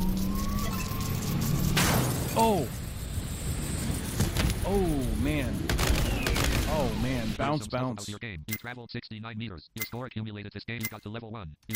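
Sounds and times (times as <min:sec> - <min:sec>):
electronic alarm tone: 0:00.0 - 0:01.7
loud rumbling noise: 0:00.0 - 0:07.4
speech: 0:02.4 - 0:02.8, 0:06.9 - 0:11.7.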